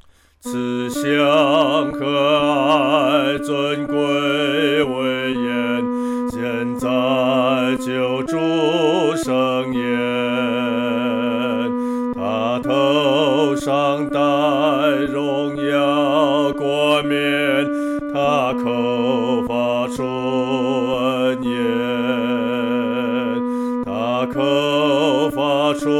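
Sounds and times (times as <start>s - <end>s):
solo singing, second voice: 0.4s - 25.9s.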